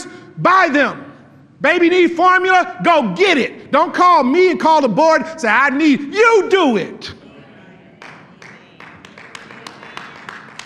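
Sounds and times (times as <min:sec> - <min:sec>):
speech: 0:00.4 - 0:01.0, 0:01.6 - 0:07.2
sharp hand claps: 0:08.0 - 0:10.6.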